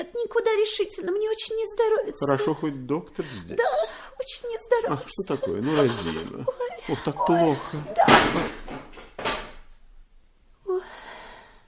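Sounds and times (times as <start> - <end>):
speech: 0.0 - 8.8
laughter: 4.8 - 8.6
chair being knocked over: 7.8 - 9.7.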